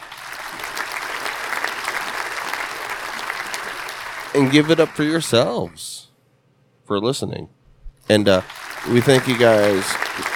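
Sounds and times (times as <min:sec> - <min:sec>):
audience applause for a podcast guest: 0:00.0 - 0:05.6, 0:08.2 - 0:10.3
speech: 0:04.4 - 0:06.1, 0:06.9 - 0:10.3.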